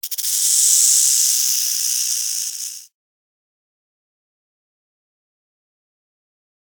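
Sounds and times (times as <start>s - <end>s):
snake rattle buzzing: 0.0s - 2.9s.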